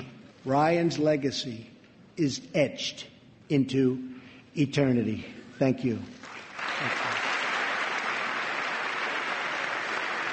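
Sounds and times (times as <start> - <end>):
speech: 0.4 - 7.0
audience applause: 6.2 - 10.3.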